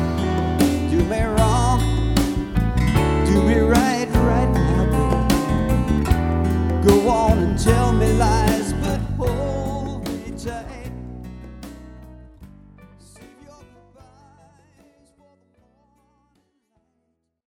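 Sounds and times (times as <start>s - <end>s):
person singing cover vocals: 0.0s - 2.4s, 3.0s - 11.1s, 13.0s - 16.4s.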